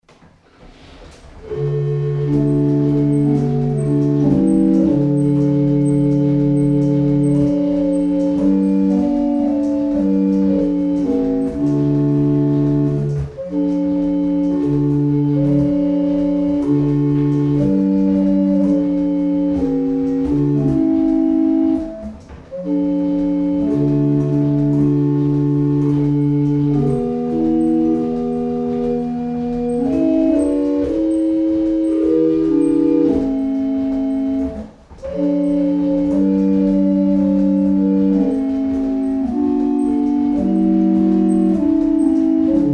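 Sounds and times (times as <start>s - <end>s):
barrel organs: 0.1s - 42.7s.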